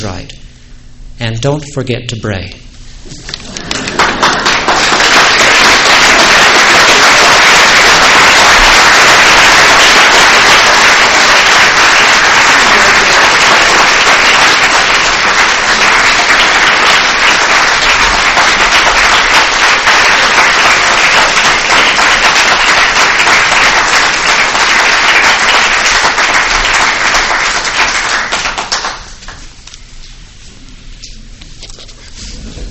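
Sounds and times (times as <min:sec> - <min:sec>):
speech: 0:00.0 - 0:00.4, 0:01.2 - 0:03.3
audience applause: 0:03.5 - 0:29.4.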